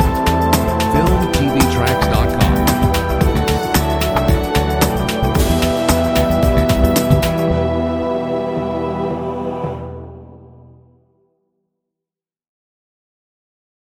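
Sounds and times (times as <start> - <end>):
hip hop music: 0.0 - 9.0.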